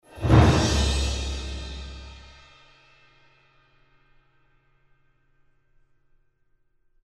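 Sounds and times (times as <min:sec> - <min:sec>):
swell: 0:00.1 - 0:02.3.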